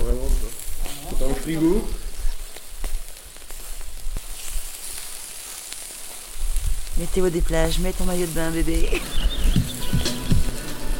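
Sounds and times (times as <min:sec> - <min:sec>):
crackling fire: 0:00.0 - 0:10.9
speech: 0:01.5 - 0:02.0, 0:07.0 - 0:09.3.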